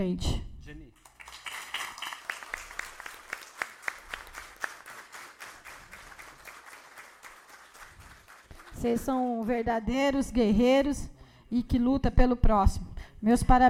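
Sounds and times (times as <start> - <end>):
speech: 0.0 - 0.5, 8.8 - 13.6
audience applause: 1.0 - 9.6.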